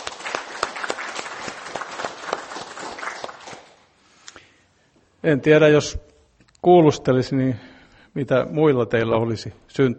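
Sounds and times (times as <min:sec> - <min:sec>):
audience applause: 0:00.0 - 0:03.9
speech: 0:05.2 - 0:09.9.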